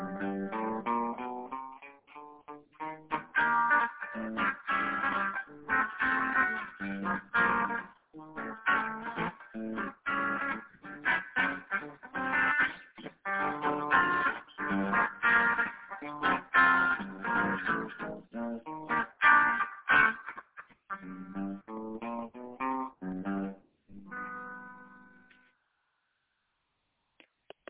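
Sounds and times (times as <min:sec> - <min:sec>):
groovy walking chords: 0:00.0 - 0:25.0.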